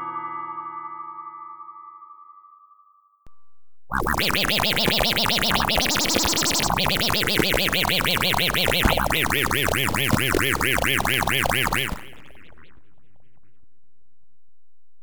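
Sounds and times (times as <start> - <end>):
Synclavier synthesizer sound effect: 3.3 - 14.3.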